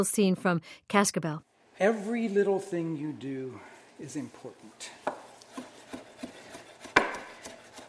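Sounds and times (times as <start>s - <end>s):
speech: 0.0s - 5.2s
knife chopping vegetables: 5.0s - 7.8s.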